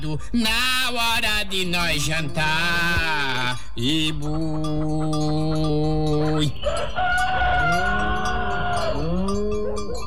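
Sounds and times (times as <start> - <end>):
speech: 0.0 - 7.9
rooster crowing: 6.2 - 10.0.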